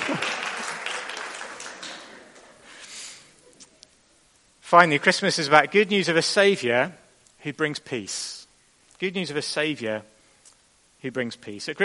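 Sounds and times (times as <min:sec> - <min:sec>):
applause: 0:00.0 - 0:02.6
speech: 0:04.7 - 0:08.4, 0:09.0 - 0:10.1, 0:11.0 - 0:11.8.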